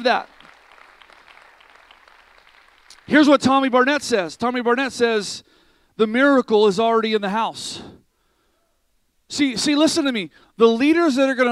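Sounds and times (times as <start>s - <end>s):
speech: 0.0s - 0.3s, 3.1s - 8.0s, 9.3s - 11.5s
audience applause: 0.0s - 3.6s.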